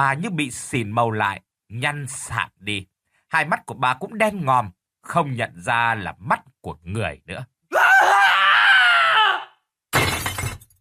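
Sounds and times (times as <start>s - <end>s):
speech: 0.0s - 7.5s
man screaming in terror: 7.7s - 9.6s.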